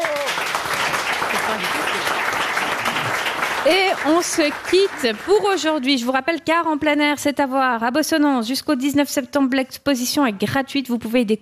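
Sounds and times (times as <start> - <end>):
audience applause: 0.0 - 5.8
speech: 3.7 - 11.3.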